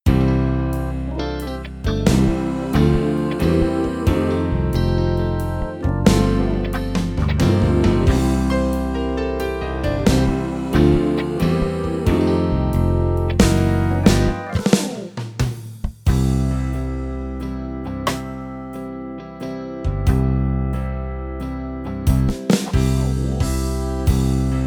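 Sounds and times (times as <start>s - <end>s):
gospel music: 0.0s - 24.6s.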